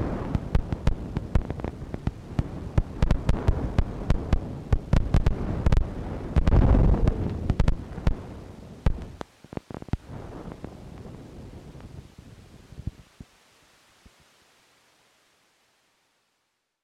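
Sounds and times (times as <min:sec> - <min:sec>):
collage of fireworks: 0:00.0 - 0:12.1.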